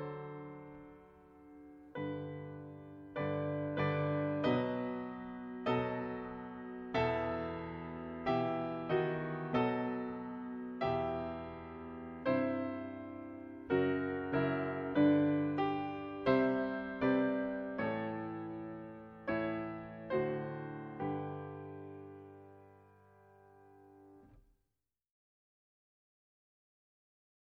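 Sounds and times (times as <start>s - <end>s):
anthem piano accompaniment: 0.0s - 24.2s.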